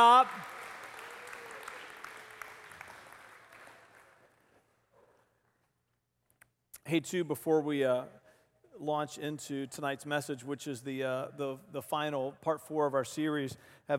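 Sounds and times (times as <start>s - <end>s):
speech: 0.0s - 0.6s, 6.9s - 8.2s, 8.8s - 13.9s
audience clapping: 0.0s - 4.8s.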